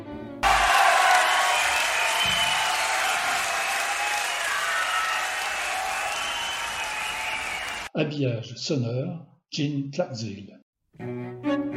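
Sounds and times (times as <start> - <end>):
audience applause: 0.4 - 7.9
speech: 8.0 - 11.7.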